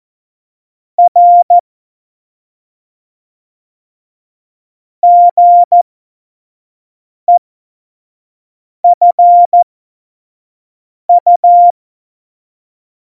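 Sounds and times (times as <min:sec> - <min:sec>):
Morse code beeps for a Morse course: 0:01.0 - 0:01.6, 0:05.0 - 0:05.8, 0:08.9 - 0:09.6, 0:11.1 - 0:11.7.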